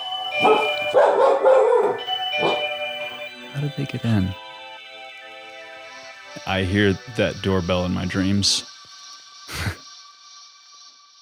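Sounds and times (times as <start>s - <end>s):
dog barking: 0.4s - 2.8s
speech: 3.6s - 4.4s, 6.5s - 8.7s.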